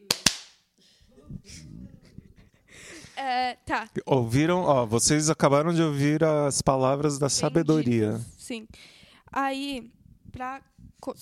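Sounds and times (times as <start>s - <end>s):
single hand clap: 0.0s - 0.6s
speech: 3.2s - 11.2s.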